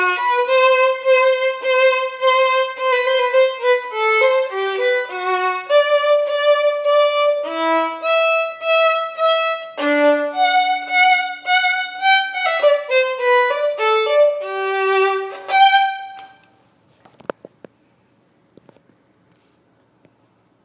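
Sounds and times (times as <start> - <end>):
violin playing: 0.0 - 16.5.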